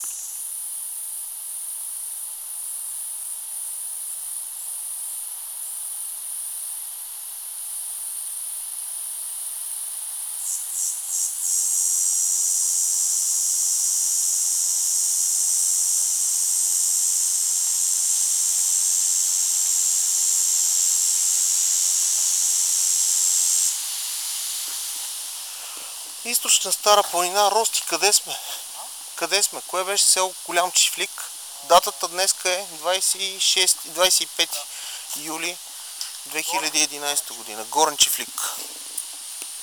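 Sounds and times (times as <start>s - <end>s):
cicada buzzing: 10.4s - 39.6s
speech: 26.6s - 28.5s, 29.2s - 38.6s.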